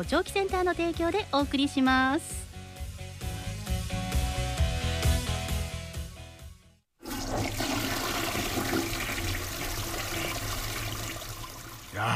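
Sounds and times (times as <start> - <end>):
speech: 0.0 - 2.4
music: 0.0 - 6.9
clogged toilet flushing: 7.0 - 12.0.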